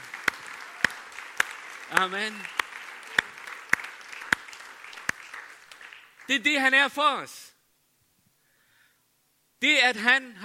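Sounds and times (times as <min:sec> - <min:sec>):
crowd clapping: 0:00.0 - 0:06.8
speech: 0:01.9 - 0:02.6, 0:06.3 - 0:07.4, 0:09.6 - 0:10.4.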